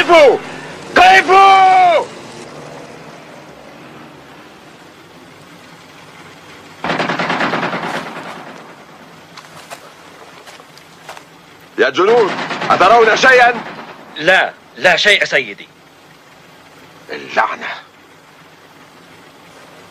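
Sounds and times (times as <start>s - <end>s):
speech: 0.0s - 2.2s, 11.8s - 15.8s, 17.1s - 17.8s
gunfire warning shots: 6.8s - 9.2s, 12.0s - 14.6s.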